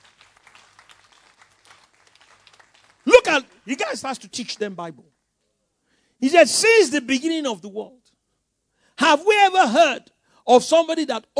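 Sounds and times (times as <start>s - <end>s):
audience clapping: 0.0s - 5.2s
speech: 3.3s - 5.2s, 6.2s - 8.0s, 9.1s - 11.3s.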